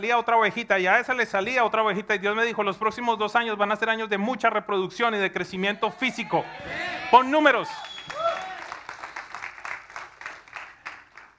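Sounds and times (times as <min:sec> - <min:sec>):
speech: 0:00.0 - 0:07.9
few people giving a soft polite golf clap: 0:07.8 - 0:11.3.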